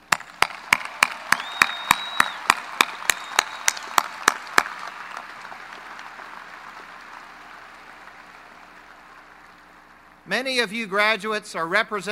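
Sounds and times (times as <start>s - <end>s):
audience applause: 0.3s - 10.2s
speech: 10.3s - 12.1s.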